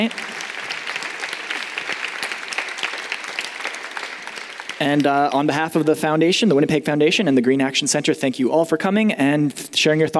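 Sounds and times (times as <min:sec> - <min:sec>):
speech: 0:00.0 - 0:00.3, 0:04.8 - 0:10.1
audience applause: 0:00.0 - 0:05.3.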